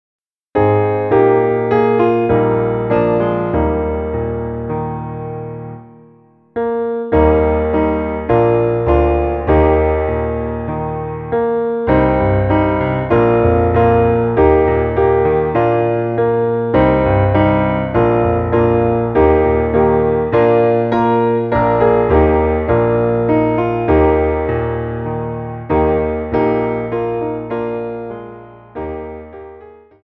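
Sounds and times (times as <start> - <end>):
instrumental music: 0.6 - 30.0.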